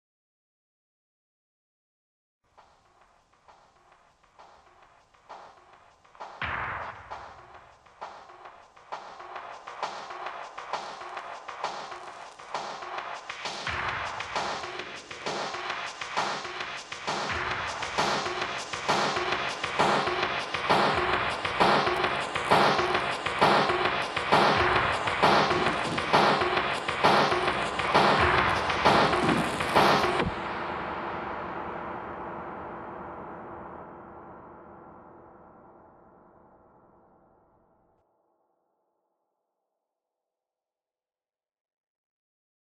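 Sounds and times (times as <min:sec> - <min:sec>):
percussion: 0:02.5 - 0:35.0.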